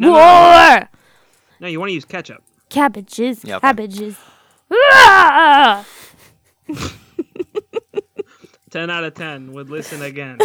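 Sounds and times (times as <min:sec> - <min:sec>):
person imitating a roar: 0:00.0 - 0:00.8, 0:04.7 - 0:05.8
speech: 0:00.0 - 0:00.9, 0:01.6 - 0:07.0, 0:08.7 - 0:10.4
laughter: 0:06.0 - 0:08.5.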